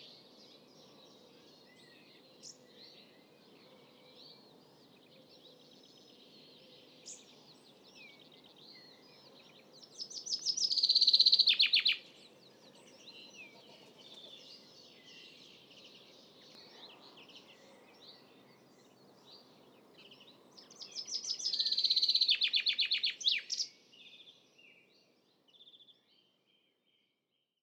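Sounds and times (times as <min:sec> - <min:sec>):
common chaffinch Fringilla coelebs singing: 0:07.1 - 0:24.2.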